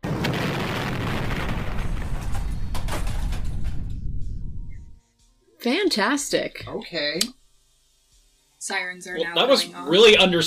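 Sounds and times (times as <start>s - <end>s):
crackling bursts: 0.0s - 5.0s
heavy deep rumbling explosion sound effect: 0.0s - 5.0s
speech: 5.6s - 7.4s, 8.6s - 10.4s.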